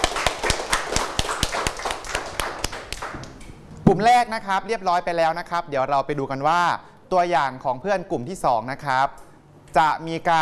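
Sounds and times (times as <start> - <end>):
students applauding: 0.0 - 3.4
speech: 3.9 - 10.4.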